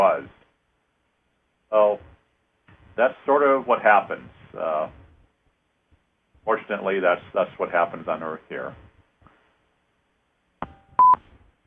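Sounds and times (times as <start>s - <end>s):
speech: 0.0s - 0.4s, 1.7s - 2.1s, 3.0s - 5.0s, 6.4s - 8.8s
beep of a caller joining the line: 10.6s - 11.2s.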